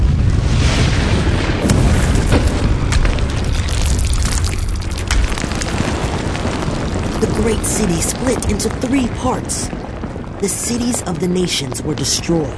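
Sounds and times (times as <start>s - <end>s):
crackling bursts and sharp pops: 0.0s - 12.5s
thunder and earthquake rumble: 0.0s - 12.5s
speech: 7.6s - 9.8s, 10.4s - 12.5s.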